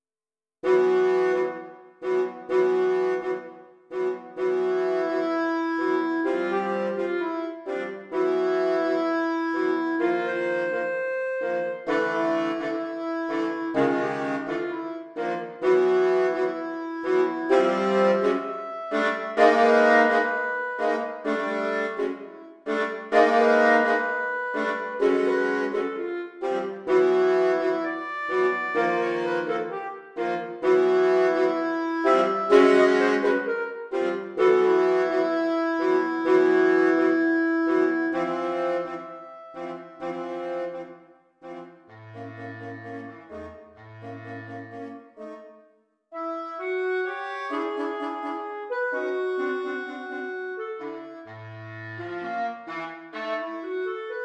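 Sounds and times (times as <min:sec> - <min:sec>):
tango on saxophone: 0:00.6 - 0:54.2.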